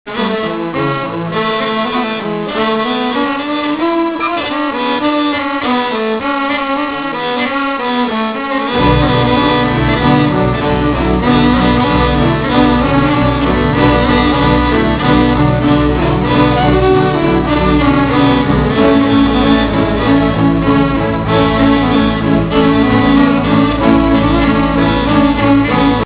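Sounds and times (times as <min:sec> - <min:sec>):
violin: 0:00.1 - 0:26.0.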